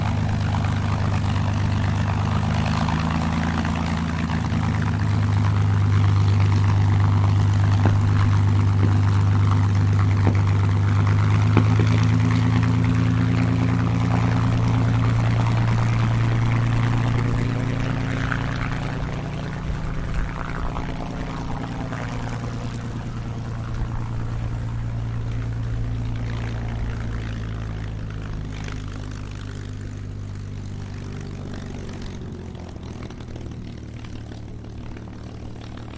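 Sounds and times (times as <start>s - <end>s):
CAC CA-18 Mustang Mk23 aircraft starting up, idling and taxiing: 0.0s - 35.9s.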